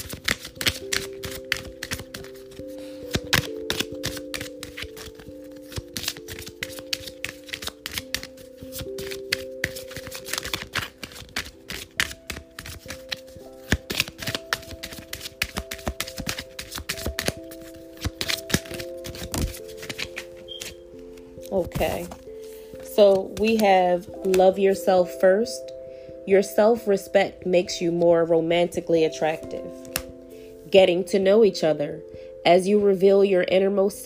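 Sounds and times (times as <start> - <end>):
angel cards being shuffled: 0.0 - 22.4, 29.7 - 30.1
speech: 23.0 - 25.7, 26.3 - 29.7, 30.7 - 34.0.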